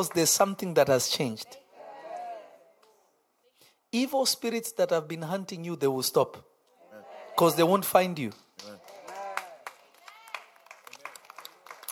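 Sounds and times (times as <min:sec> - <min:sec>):
audience clapping: 0:00.0 - 0:00.6, 0:08.1 - 0:11.8
speech: 0:00.0 - 0:01.6, 0:03.9 - 0:06.5, 0:07.4 - 0:08.7.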